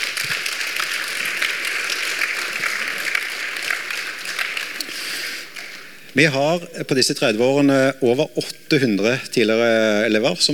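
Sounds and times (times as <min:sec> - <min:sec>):
audience applause: 0:00.0 - 0:05.9
speech: 0:06.2 - 0:10.5.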